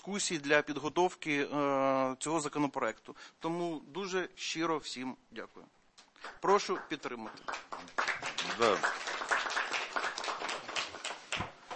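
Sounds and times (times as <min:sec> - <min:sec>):
speech: 0:00.0 - 0:09.3
ovation clapping in committee: 0:06.2 - 0:11.7.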